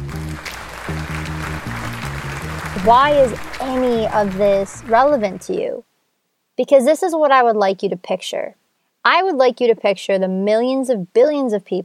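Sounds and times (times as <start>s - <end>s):
applause sound effect: 0.0s - 5.6s
speech: 2.8s - 5.9s, 6.6s - 11.8s.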